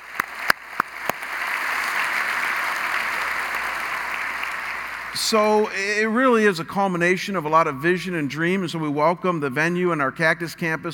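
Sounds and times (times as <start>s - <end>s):
applause from a church congregation: 0.0s - 5.8s
speech: 5.2s - 10.9s.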